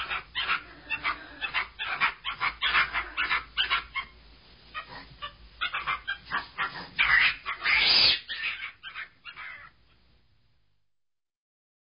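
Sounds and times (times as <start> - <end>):
monkeys calling: 0.0 - 4.2, 4.8 - 9.8.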